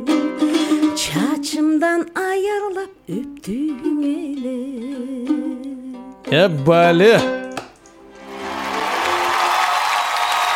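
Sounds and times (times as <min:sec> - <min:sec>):
speech: 0:01.0 - 0:07.4
audience applause: 0:08.2 - 0:10.5.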